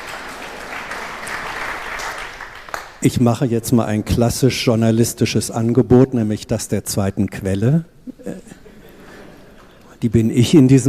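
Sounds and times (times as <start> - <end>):
audience applause: 0.0 - 3.0
speech: 3.0 - 8.6, 10.0 - 10.8
laughter: 8.2 - 9.8.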